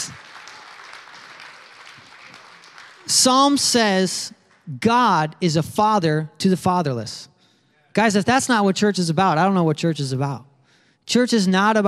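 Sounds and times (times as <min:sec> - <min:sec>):
audience applause: 0:00.0 - 0:03.6
speech: 0:03.1 - 0:07.3, 0:08.0 - 0:10.5, 0:11.1 - 0:11.8.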